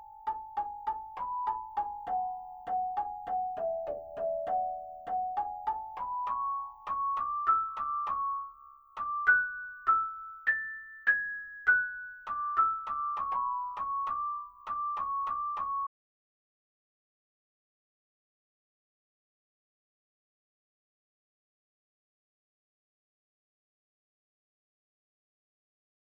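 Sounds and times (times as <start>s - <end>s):
toy piano playing A: 0.0s - 15.9s.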